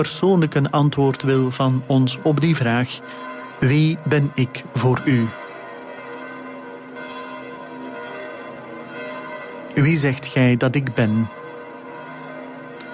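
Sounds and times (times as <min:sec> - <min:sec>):
speech: 0:00.0 - 0:05.4, 0:09.8 - 0:11.4
church bells of St. Peter's Basilica pealing: 0:00.0 - 0:12.9.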